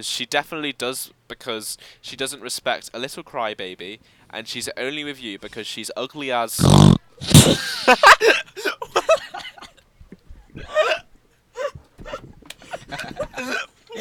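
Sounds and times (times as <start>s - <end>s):
speech: 0.0s - 8.9s
person imitating a pig's snort with nasal grunting bursts: 6.6s - 7.8s.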